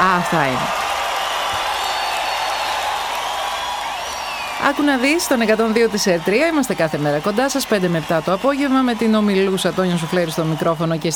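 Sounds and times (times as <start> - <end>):
audience applause: 0.0 - 11.1
speech: 0.2 - 0.9, 4.6 - 11.1.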